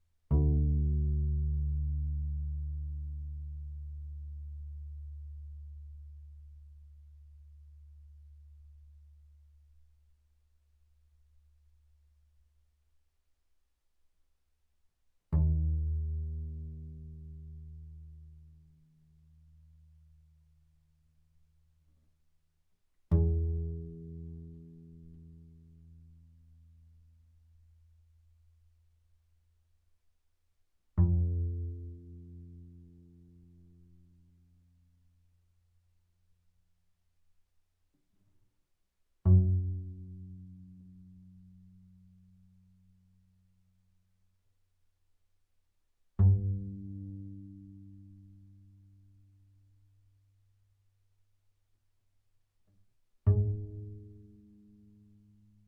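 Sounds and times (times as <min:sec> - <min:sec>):
double bass pizzicato on the D string fortissimo: 0:00.3 - 0:09.4, 0:15.3 - 0:20.2, 0:23.1 - 0:27.6, 0:31.0 - 0:35.0, 0:39.2 - 0:43.4, 0:46.2 - 0:49.6, 0:53.2 - 0:55.6.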